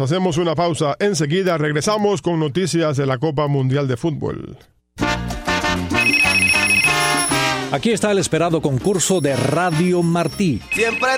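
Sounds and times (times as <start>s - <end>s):
speech: 0.0s - 4.7s, 7.7s - 11.1s
telephone ringing with a bright electronic ringtone: 6.0s - 7.6s, 9.1s - 11.1s.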